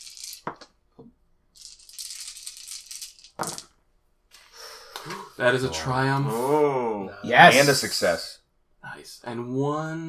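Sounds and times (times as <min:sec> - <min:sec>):
dice rattling: 0:00.0 - 0:04.6
speech: 0:03.4 - 0:03.6, 0:05.4 - 0:08.4, 0:09.0 - 0:10.0.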